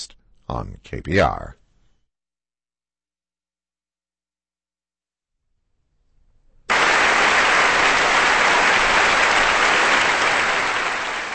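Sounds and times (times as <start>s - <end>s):
speech: 0.0s - 1.6s
concert audience applause for orchestra: 6.7s - 11.3s.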